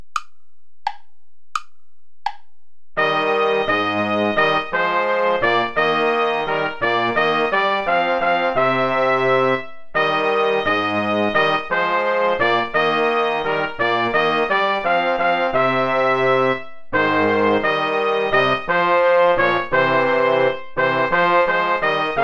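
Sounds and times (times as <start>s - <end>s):
play-along backing music without trumpet: 3.0s - 22.2s.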